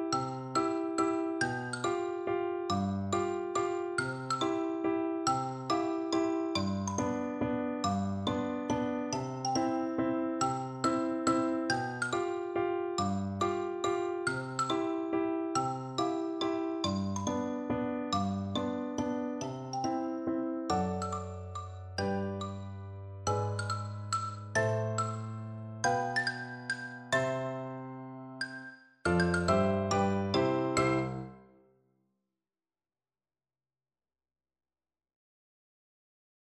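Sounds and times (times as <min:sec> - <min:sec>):
xylophone: 0:00.1 - 0:31.4.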